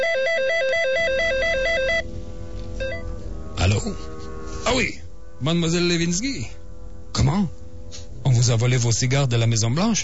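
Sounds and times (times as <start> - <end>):
telephone ringing: 0.0 - 2.0
speech: 3.8 - 6.6, 7.2 - 7.6, 8.2 - 10.0.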